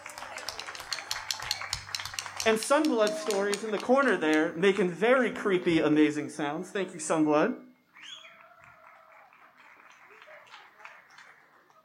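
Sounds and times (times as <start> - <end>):
audience applause: 0.0 - 5.0, 8.1 - 11.8
speech: 2.4 - 7.7.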